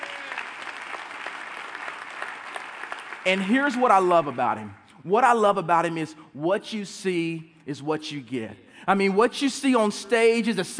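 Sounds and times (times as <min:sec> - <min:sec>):
crowd clapping: 0:00.0 - 0:04.8
speech: 0:03.3 - 0:10.7.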